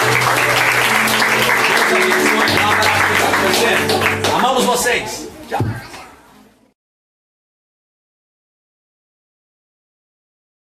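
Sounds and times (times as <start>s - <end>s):
large crowd applauding: 0.0s - 5.1s
sustained keyboard chords: 0.0s - 5.4s
speech: 4.8s - 5.8s.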